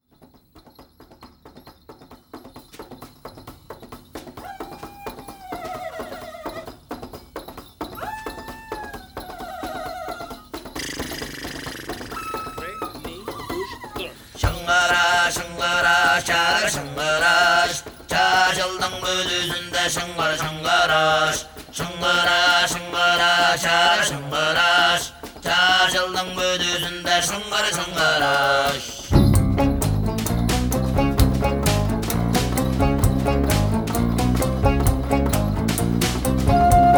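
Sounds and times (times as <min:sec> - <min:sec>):
Christmas song: 0:12.2 - 0:36.9.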